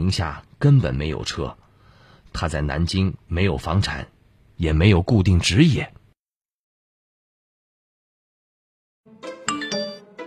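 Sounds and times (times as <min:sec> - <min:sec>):
speech: 0:00.0 - 0:01.6, 0:02.3 - 0:06.0
text message notification chime: 0:09.4 - 0:10.2.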